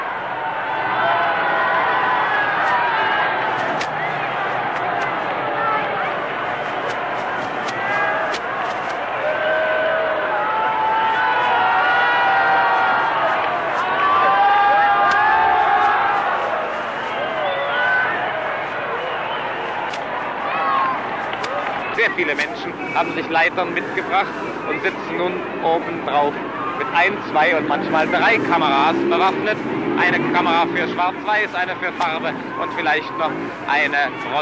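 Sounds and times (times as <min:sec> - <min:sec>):
large crowd in Berlin cheering for President Kennedy and Chancellor Adenauer: 0:00.0 - 0:34.4
scattered sharp claps: 0:02.3 - 0:10.3, 0:11.0 - 0:24.9
crowd whistles: 0:19.0 - 0:19.7
speech: 0:22.2 - 0:34.4.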